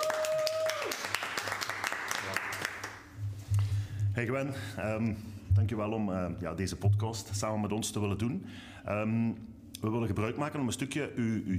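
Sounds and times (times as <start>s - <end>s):
audience clapping: 0.0s - 3.2s
speech: 4.2s - 11.5s.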